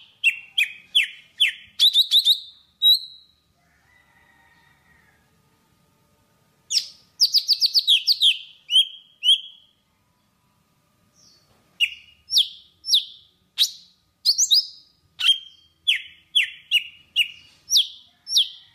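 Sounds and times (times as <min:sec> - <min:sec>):
Java sparrow singing: 0:00.0 - 0:03.4, 0:06.7 - 0:09.7, 0:11.2 - 0:18.6.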